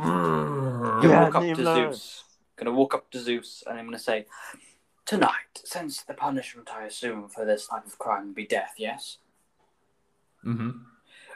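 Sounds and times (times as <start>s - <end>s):
person vocally imitating a creature's roar: 0.0s - 1.4s
speech: 1.0s - 9.2s, 10.4s - 10.9s.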